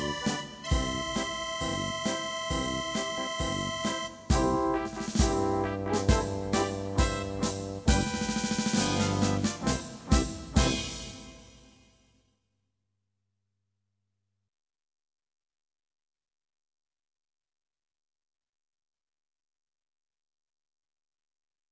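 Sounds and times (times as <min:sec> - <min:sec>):
polka music: 0:00.0 - 0:11.7.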